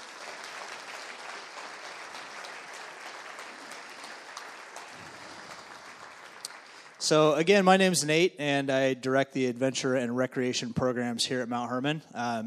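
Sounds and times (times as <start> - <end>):
audience applause: 0.0 - 7.8
speech: 7.0 - 12.4.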